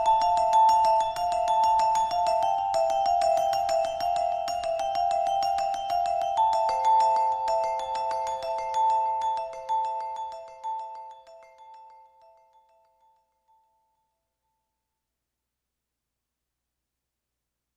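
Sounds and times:
vibraphone: 0:00.0 - 0:13.8.

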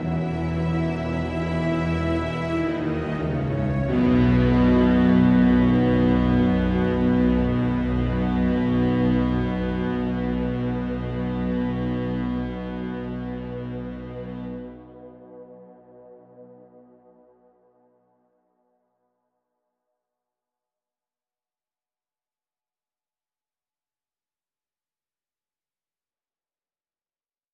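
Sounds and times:
strings melody: 0:00.0 - 0:17.3.

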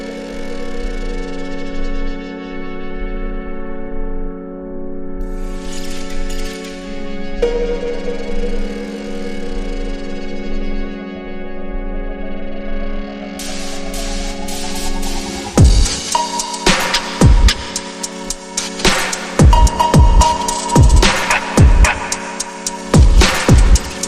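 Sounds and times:
slowed reverb music: 0:06.7 - 0:24.0.

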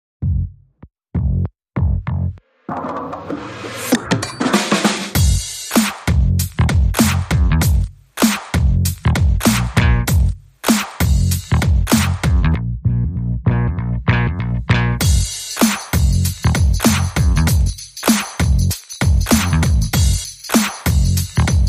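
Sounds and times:
bass: 0:00.2 - 0:02.4, 0:05.2 - 0:21.6
drums: 0:02.7 - 0:12.5, 0:15.0 - 0:21.6.

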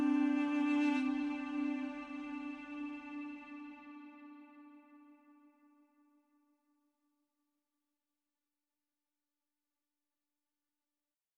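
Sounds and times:
duduk: 0:00.0 - 0:05.5.

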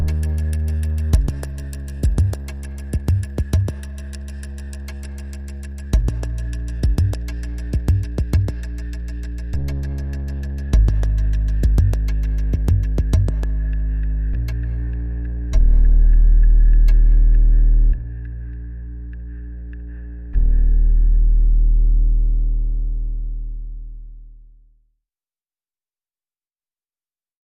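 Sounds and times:
percussion: 0:00.0 - 0:18.6
bass: 0:00.0 - 0:24.9.

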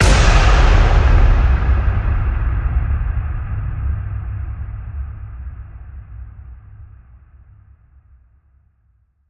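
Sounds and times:
big hit with faint echo: 0:00.0 - 0:07.0.

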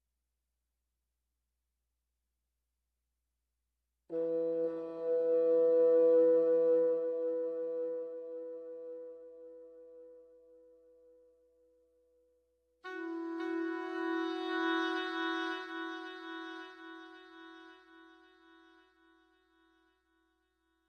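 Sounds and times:
woodwinds: 0:04.1 - 0:10.8, 0:12.8 - 0:20.1.

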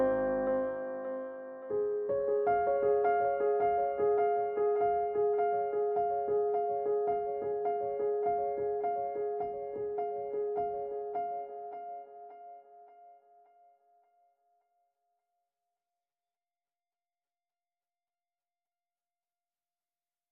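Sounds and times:
piano piece: 0:00.0 - 0:14.1.

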